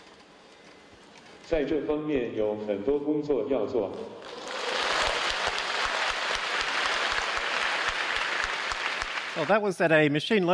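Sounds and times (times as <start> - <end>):
speech: 1.5 - 4.2, 9.4 - 10.5
spontaneous audience applause at an academic conference: 4.2 - 9.6.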